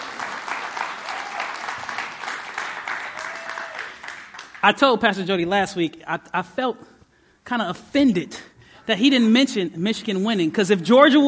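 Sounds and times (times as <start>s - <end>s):
church congregation applauding at a morning service: 0.0s - 5.0s
speech: 4.6s - 11.2s.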